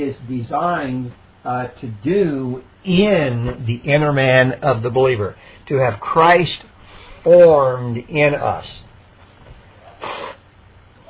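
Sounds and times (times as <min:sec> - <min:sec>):
speech: 0:00.0 - 0:08.9
low hum: 0:00.0 - 0:11.0
person sneezing during a sermon: 0:09.9 - 0:10.4.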